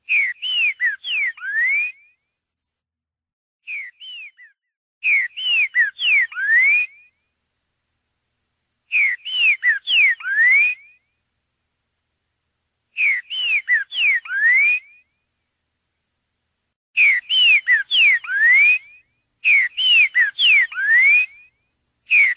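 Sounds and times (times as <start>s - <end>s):
green-winged saltator song: 0.0s - 2.3s, 3.6s - 7.3s, 8.9s - 11.2s, 12.9s - 15.3s, 17.0s - 22.3s.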